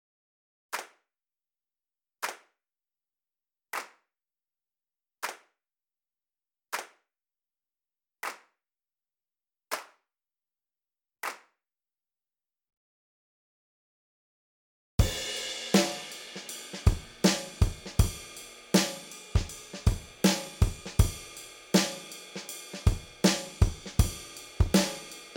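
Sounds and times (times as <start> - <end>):
Motown-style drum kit: 15.0 - 25.3.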